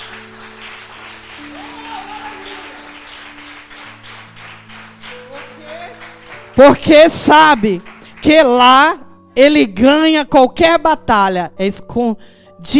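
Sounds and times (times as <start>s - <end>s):
audience applause: 0.0s - 6.9s, 7.5s - 8.2s
speech: 6.6s - 12.7s.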